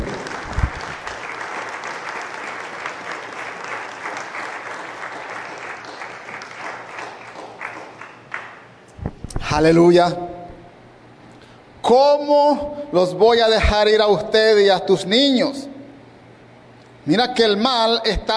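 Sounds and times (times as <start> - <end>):
audience applauding: 0.0 - 8.8
speech: 9.6 - 10.2, 11.9 - 15.7, 17.0 - 18.3.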